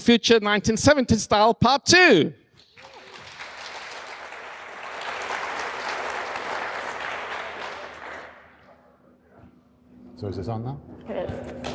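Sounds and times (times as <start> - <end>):
speech: 0.0 - 2.4, 10.2 - 11.7
audience applause welcoming speakers: 2.7 - 8.6.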